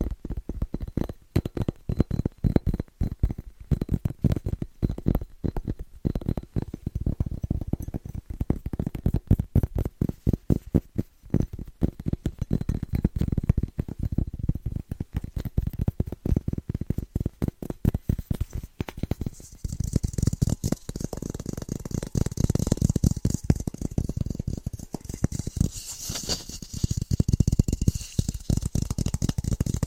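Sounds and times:
fast rhythmic tapping: 0.0s - 29.8s
bright hissy scratching: 19.2s - 29.8s.

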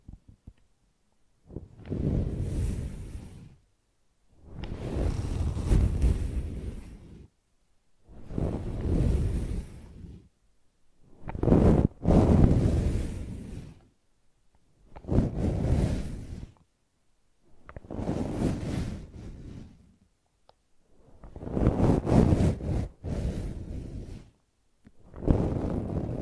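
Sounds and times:
brushing and scratching: 1.5s - 3.6s, 4.4s - 7.3s, 8.1s - 10.3s, 11.2s - 13.9s, 14.9s - 16.6s, 17.6s - 20.0s, 21.0s - 24.4s, 25.0s - 26.2s.

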